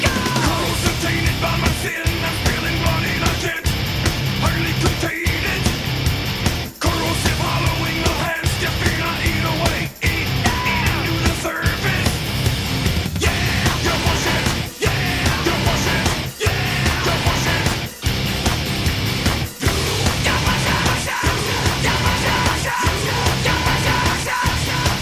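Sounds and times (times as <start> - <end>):
shouted vocals: 0.0 - 3.7, 6.8 - 12.2, 13.2 - 18.0, 19.6 - 24.9
industrial metal track with distorted guitars and pounding drums: 0.0 - 24.9.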